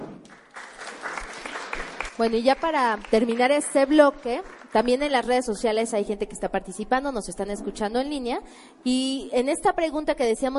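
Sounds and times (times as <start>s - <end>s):
audience applause: 0.2s - 5.0s
speech: 2.2s - 10.5s.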